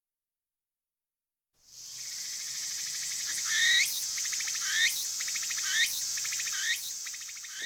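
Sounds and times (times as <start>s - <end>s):
daytime-chirping cricket of gardens and orchards trilling: 1.7s - 7.6s.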